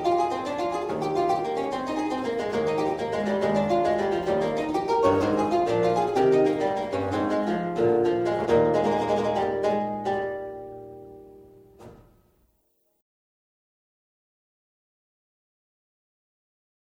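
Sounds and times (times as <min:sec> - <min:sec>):
historical keyboard lute playing: 0:00.0 - 0:11.7.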